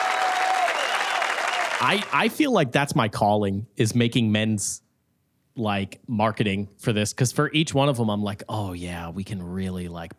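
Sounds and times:
audience clapping sound effect: 0.0s - 2.4s
speech: 1.8s - 4.8s, 5.6s - 10.1s.

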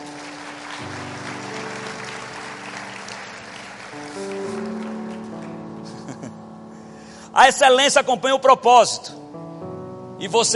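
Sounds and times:
audience applause: 0.0s - 6.3s
laughter: 5.8s - 6.4s
speech: 7.4s - 9.2s, 10.2s - 10.5s.

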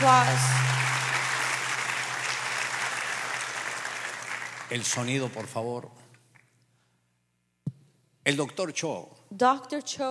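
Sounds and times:
brief tonal hum: 0.0s - 2.2s
audience round of applause: 0.0s - 5.6s
speech: 0.1s - 0.7s, 4.7s - 6.0s, 8.2s - 10.0s.

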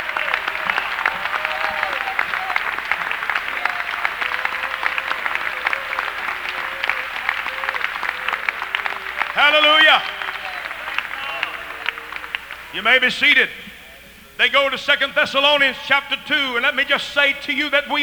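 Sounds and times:
audience clapping: 0.0s - 13.1s
speech: 9.5s - 10.2s, 12.8s - 13.6s, 14.4s - 18.0s.

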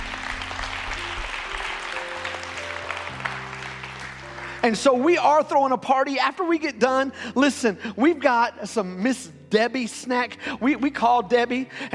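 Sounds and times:
church congregation applauding: 0.0s - 5.6s
speech: 4.6s - 11.9s.

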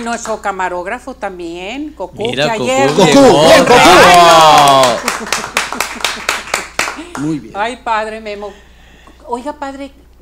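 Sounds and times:
speech: 0.0s - 5.5s, 7.2s - 8.7s, 9.3s - 10.0s
applause: 3.8s - 7.4s.

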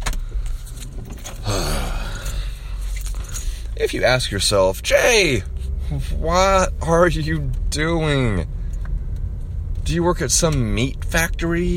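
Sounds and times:
car engine and road noise on a drive to work before sunrise: 0.0s - 11.7s
speech: 3.8s - 8.5s, 9.9s - 11.7s.

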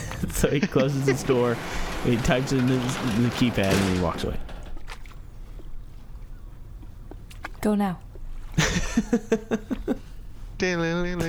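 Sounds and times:
laughter: 0.0s - 4.3s, 8.5s - 11.2s
small dinghy moving across water: 0.0s - 11.2s
speech: 0.4s - 4.5s, 7.6s - 11.2s.

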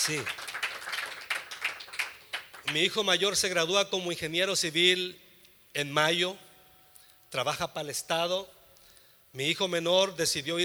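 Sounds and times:
speech: 0.0s - 0.4s, 2.7s - 5.2s, 5.8s - 6.4s, 7.3s - 8.6s, 9.3s - 10.6s
audience applause: 0.0s - 2.8s.

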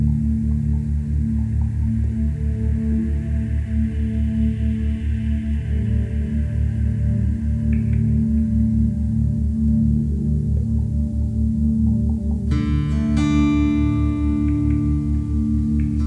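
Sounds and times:
binaural beats layered low drone: 0.0s - 16.0s
soft hiss: 0.0s - 16.0s.

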